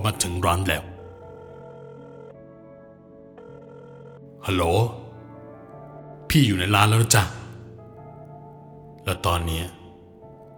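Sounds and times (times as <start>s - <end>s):
speech: 0.2s - 0.9s, 4.4s - 5.0s, 6.3s - 7.4s, 9.0s - 9.8s
electronic telephone ringing tone: 0.9s - 6.1s.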